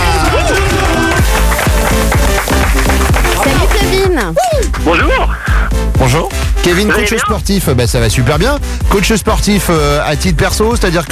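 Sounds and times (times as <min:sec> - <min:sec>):
audience applause: 0:00.0 - 0:04.1
speech: 0:04.2 - 0:05.4, 0:06.0 - 0:11.1.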